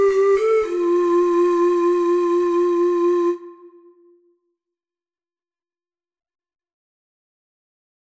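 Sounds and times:
four-hole ocarina melody: 0.0 - 4.3.

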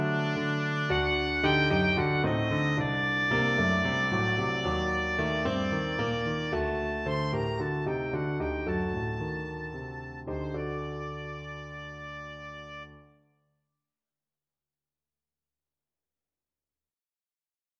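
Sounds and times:
oboe melody: 0.0 - 13.0.

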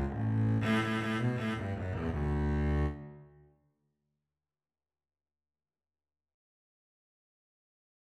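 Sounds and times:
double bass duet: 0.0 - 3.1.

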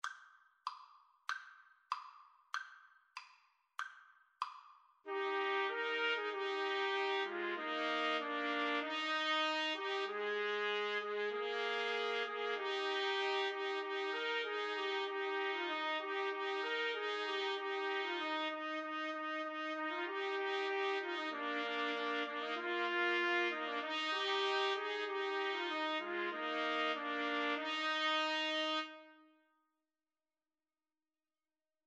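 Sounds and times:
trumpet trio playing: 5.1 - 29.3.

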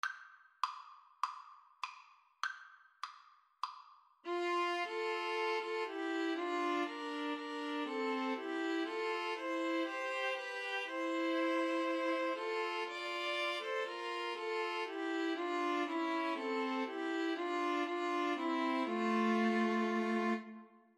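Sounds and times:
string trio playing: 4.3 - 20.6.

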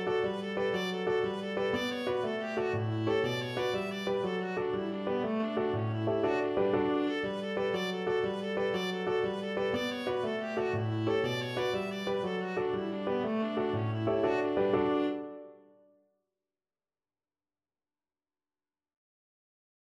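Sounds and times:
Irish jig medley: 0.0 - 15.5.

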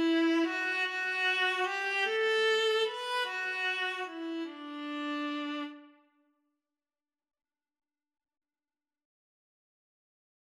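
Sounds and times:
violas playing a sonata: 0.0 - 6.0.

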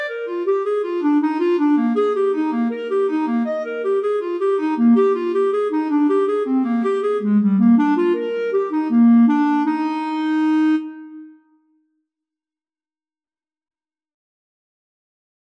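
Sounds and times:
clarinet playing a bourree: 0.0 - 11.6.

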